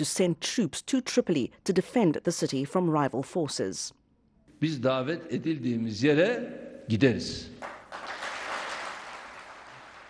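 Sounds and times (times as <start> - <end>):
speech: 0.0 - 4.0, 4.6 - 7.8
applause from ruling party officials: 7.6 - 10.0.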